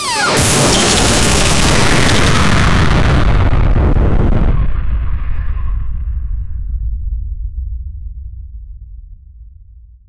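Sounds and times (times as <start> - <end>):
anime skill explosion: 0.0 - 7.0.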